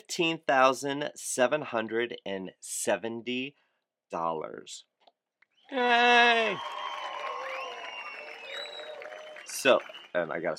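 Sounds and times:
speech: 0:00.1 - 0:04.9, 0:05.7 - 0:06.9, 0:09.5 - 0:10.5
applause sound effect: 0:05.7 - 0:10.5.

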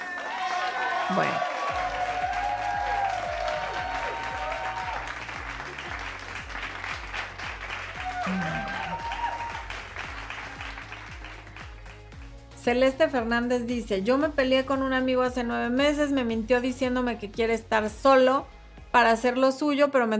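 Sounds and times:
audience applause: 0:00.0 - 0:12.3
speech: 0:01.1 - 0:01.5, 0:08.3 - 0:08.8, 0:12.6 - 0:20.1
rhythmic music with beat and melody: 0:01.2 - 0:19.4.

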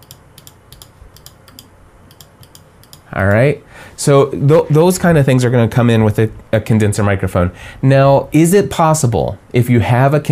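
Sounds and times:
computer mouse clicking picked up by a condenser microphone: 0:00.0 - 0:03.1
low hum: 0:00.0 - 0:10.3
speech: 0:03.1 - 0:10.3.

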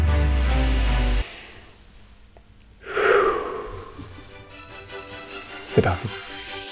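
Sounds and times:
deep breath in: 0:00.2 - 0:01.8, 0:02.8 - 0:04.3
speech: 0:05.8 - 0:06.3.

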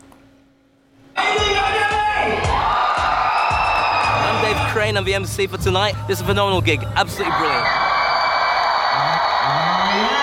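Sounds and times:
crowd of about 40,000 cheering at Beats on the Beach, Abu Dhabi: 0:01.2 - 0:05.7, 0:07.0 - 0:10.2
speech: 0:04.9 - 0:07.8.

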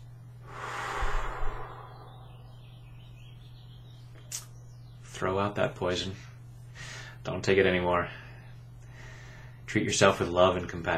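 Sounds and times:
steady low hum: 0:00.0 - 0:04.7
slow deep breath: 0:00.4 - 0:02.8, 0:06.8 - 0:07.2, 0:08.2 - 0:09.6
speech: 0:05.2 - 0:06.3, 0:07.2 - 0:08.2, 0:09.7 - 0:10.9.

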